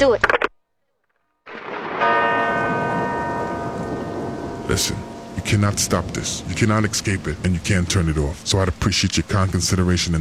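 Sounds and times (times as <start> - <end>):
speech: 0.0 - 0.4, 4.8 - 10.1
tolling church bells: 1.5 - 6.5.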